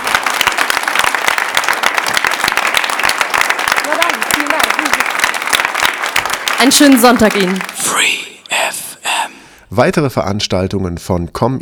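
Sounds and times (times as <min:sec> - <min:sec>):
audience applause: 0:00.0 - 0:08.3
speech: 0:06.6 - 0:08.2, 0:09.7 - 0:11.5.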